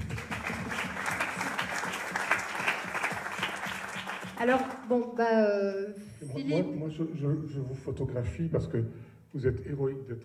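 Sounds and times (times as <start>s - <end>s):
audience applause: 0.0s - 4.8s
speech: 4.4s - 10.2s.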